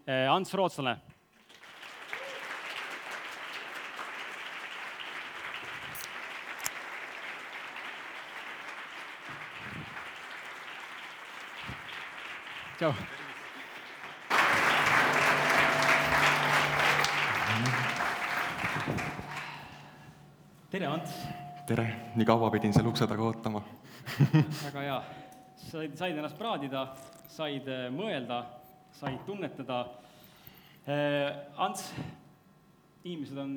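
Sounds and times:
speech: 0.1 - 1.2, 12.8 - 13.2, 20.8 - 30.0, 30.9 - 32.2, 33.0 - 33.5
live audience applause: 1.5 - 20.1
laughter: 14.3 - 19.1, 23.8 - 25.1.

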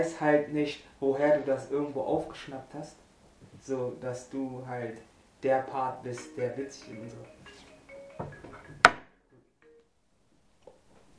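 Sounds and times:
speech: 0.0 - 3.0, 3.6 - 7.4
alarm clock beeping: 6.2 - 9.0.

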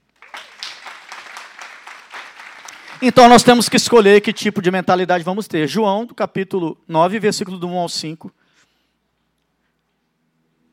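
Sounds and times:
audience applause: 0.0 - 4.6
speech: 3.0 - 8.4.

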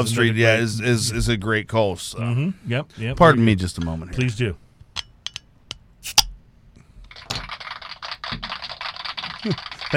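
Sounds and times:
speech: 0.0 - 4.6, 9.4 - 9.9
tinny machine-made applause sound effect: 7.2 - 9.9.

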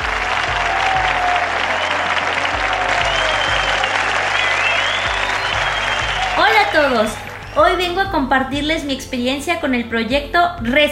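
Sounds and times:
sustained audience applause: 0.0 - 7.8
whistles: 0.5 - 7.9
speech: 6.9 - 10.9.

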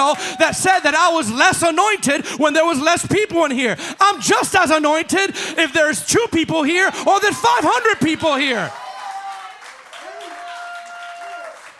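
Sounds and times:
speech: 0.0 - 8.8
audience clapping: 8.6 - 11.7.

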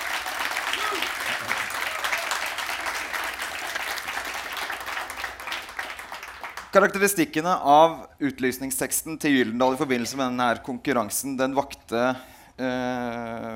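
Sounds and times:
audience applause: 0.0 - 6.8
speech: 6.8 - 13.5.

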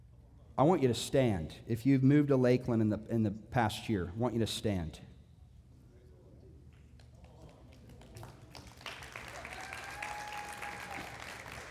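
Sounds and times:
speech: 0.6 - 5.1
crowd clapping: 7.0 - 11.6.

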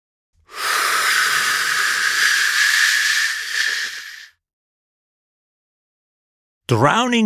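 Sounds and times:
person imitating rushing river water with a breathy shushing hiss: 0.5 - 4.4.

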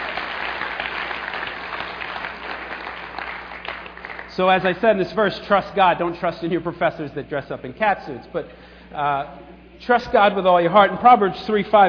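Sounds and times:
audience applause: 0.0 - 4.3
speech: 4.4 - 11.8.

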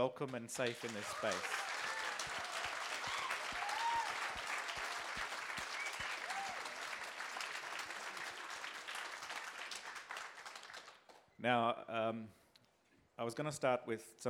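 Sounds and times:
speech: 0.0 - 1.7, 11.4 - 12.4, 13.2 - 14.2
audience applause welcoming performers: 0.6 - 11.2.

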